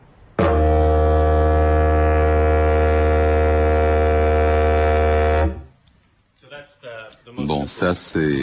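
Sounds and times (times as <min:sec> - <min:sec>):
wooden wind instrument drone from buzzing lips: 0:00.4 - 0:05.8
speech: 0:07.7 - 0:08.4.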